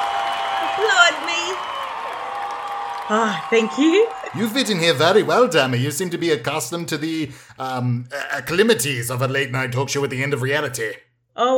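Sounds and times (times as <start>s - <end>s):
audience applause: 0.0s - 7.4s
speech: 3.1s - 11.5s
laughter: 3.7s - 10.4s.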